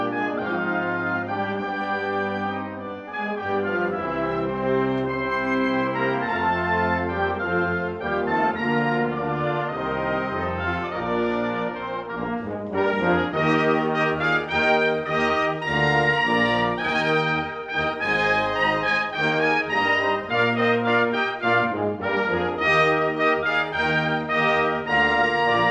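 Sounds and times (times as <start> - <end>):
trumpet prelude: 0.0 - 25.6.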